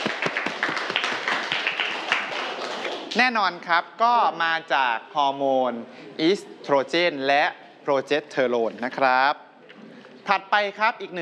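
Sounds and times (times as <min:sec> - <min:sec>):
classroom applause: 0:00.0 - 0:03.2
speech: 0:03.1 - 0:09.4, 0:10.3 - 0:11.1.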